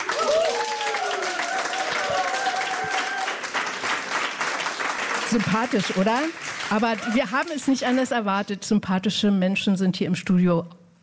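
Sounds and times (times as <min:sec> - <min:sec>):
studio audience applause: 0:00.0 - 0:08.3
speech: 0:05.3 - 0:11.0.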